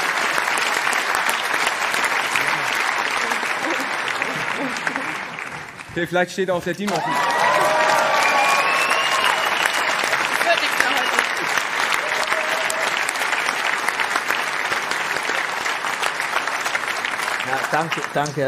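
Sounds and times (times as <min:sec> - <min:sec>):
audience applause: 0:00.0 - 0:06.2, 0:06.8 - 0:18.4
speech: 0:06.0 - 0:07.3, 0:17.8 - 0:18.4
faint voices and cheers: 0:06.9 - 0:13.2.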